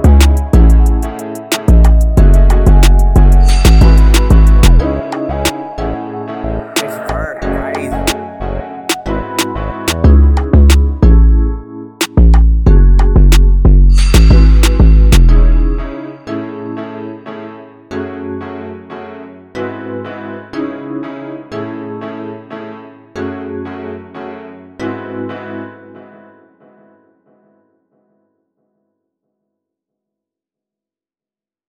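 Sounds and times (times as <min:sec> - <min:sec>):
jazz music in C minor: 0:00.0 - 0:17.5.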